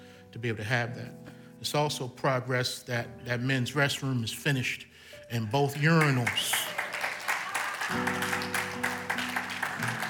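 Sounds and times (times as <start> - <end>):
speech: 0.4 - 6.7, 7.9 - 9.0
crowd clapping: 5.8 - 10.0.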